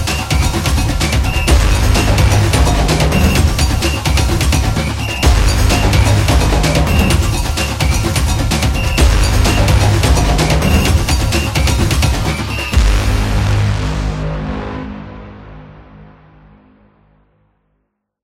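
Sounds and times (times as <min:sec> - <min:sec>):
sport drums for a soccer trailer: 0:00.0 - 0:14.3.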